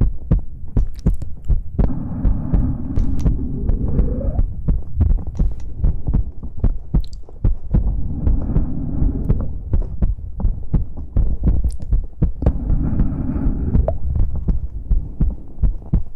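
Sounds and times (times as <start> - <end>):
low thumping undertone: 0.0 - 16.1
wet mouth clicks and smacks: 0.8 - 1.3, 7.0 - 7.3, 11.6 - 11.9.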